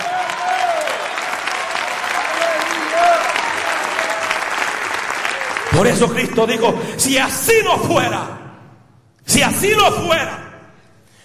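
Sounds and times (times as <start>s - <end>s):
audience applause: 0.0s - 6.7s
speech: 5.8s - 8.4s, 9.3s - 10.4s.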